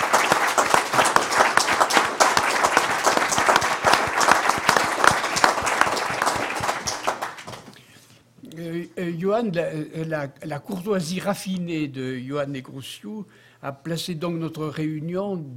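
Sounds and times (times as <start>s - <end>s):
audience applause: 0.0s - 7.7s
speech: 9.2s - 15.5s.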